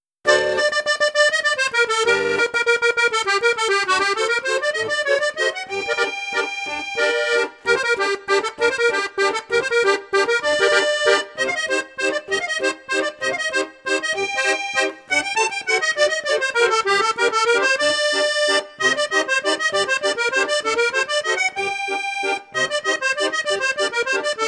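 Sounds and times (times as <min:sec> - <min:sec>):
accordion on high flute register: 0:00.2 - 0:24.4.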